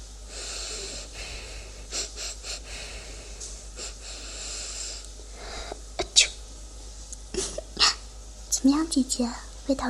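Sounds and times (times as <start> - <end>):
sniffing: 0.3 - 5.7
speech: 8.6 - 9.8.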